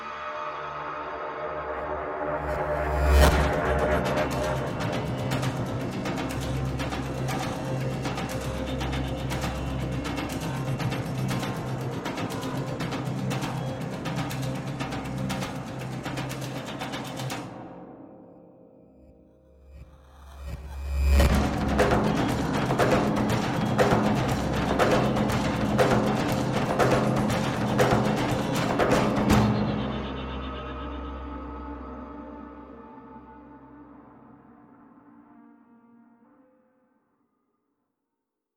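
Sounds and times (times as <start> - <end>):
synth pads: 0.0 - 36.3
small percussion: 2.9 - 17.7, 19.6 - 31.0.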